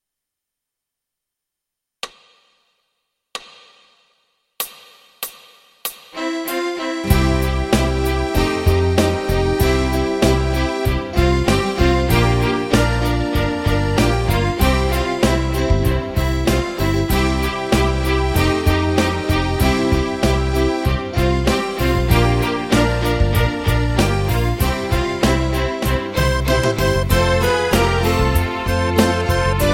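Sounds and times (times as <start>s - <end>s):
accordion playing tutti: 6.2s - 29.7s.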